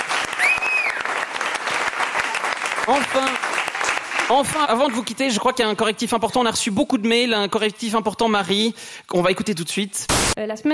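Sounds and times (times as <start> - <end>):
crowd clapping: 0.0 - 5.4
whistles and cheering voices: 0.2 - 1.2
speech: 2.9 - 3.4, 4.3 - 10.7.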